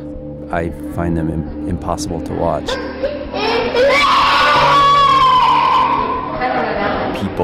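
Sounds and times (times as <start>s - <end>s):
speech: 0.5s - 3.1s, 7.2s - 7.4s
person screaming in a rage spasm: 3.4s - 6.2s.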